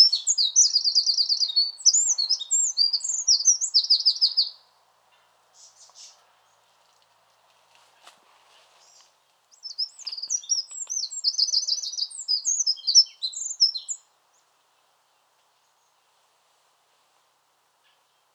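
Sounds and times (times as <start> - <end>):
Eurasian wren song: 0.0 - 4.6, 8.9 - 14.1.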